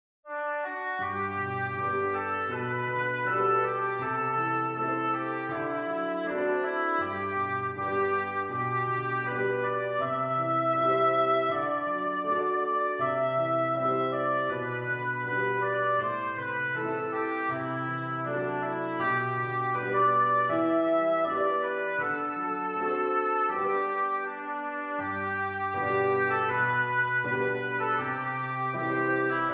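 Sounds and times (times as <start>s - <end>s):
oboe playing a folk tune: 0.3s - 29.5s
piano: 0.3s - 29.5s.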